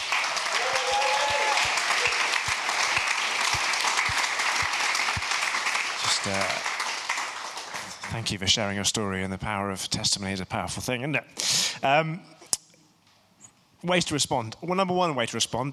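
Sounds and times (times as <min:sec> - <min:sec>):
audience applause: 0:00.0 - 0:08.6
speech: 0:06.3 - 0:06.6, 0:08.2 - 0:12.4, 0:13.8 - 0:15.7.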